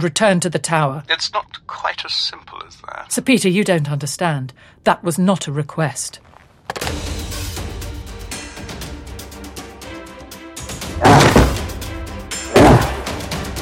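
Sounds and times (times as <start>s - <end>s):
speech: 0.0s - 7.1s
door being battered down: 11.0s - 11.7s, 12.6s - 13.0s.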